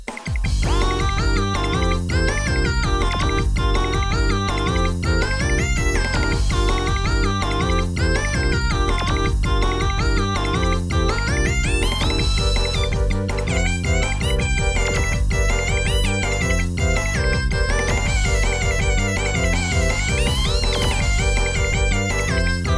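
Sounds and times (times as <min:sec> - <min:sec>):
stage background music: 0:00.5 - 0:22.7.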